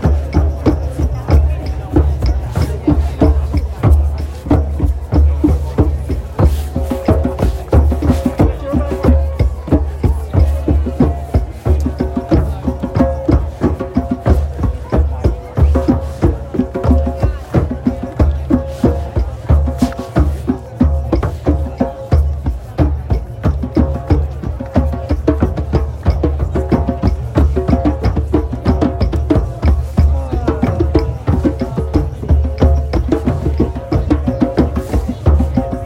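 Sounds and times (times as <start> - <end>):
thousands of people gathered at Stonehenge at summer solstice sunrise: 0.0 - 35.8.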